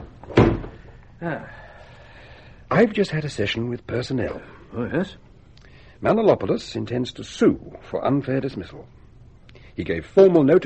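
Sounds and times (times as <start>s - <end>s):
door closing: 0.0s - 0.9s
faint hum: 0.0s - 10.6s
speech: 1.2s - 1.6s, 2.7s - 5.2s, 6.0s - 9.0s, 9.8s - 10.6s.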